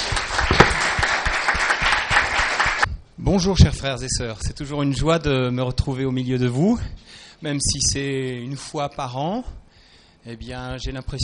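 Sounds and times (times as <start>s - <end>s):
congregation applause at a church service: 0.0s - 2.9s
speech: 3.3s - 9.6s, 10.2s - 11.2s.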